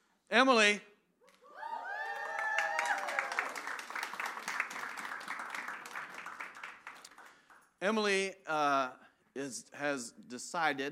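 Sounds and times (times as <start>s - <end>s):
speech: 0.3s - 0.9s, 7.8s - 10.8s
audience clapping: 1.8s - 7.7s.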